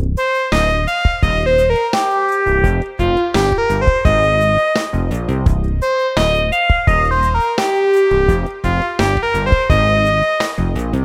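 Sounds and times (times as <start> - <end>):
simple triplet rhythm: 0.2 - 11.0.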